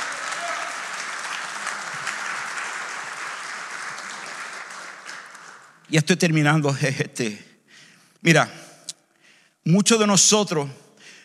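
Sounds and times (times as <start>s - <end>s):
audience applause: 0.0s - 5.9s
speech: 5.9s - 7.5s, 8.2s - 8.6s, 9.6s - 10.8s.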